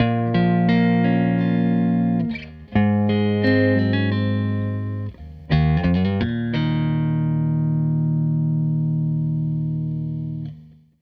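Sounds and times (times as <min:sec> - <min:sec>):
Telecaster electric guitar loop: 0:00.0 - 0:10.8.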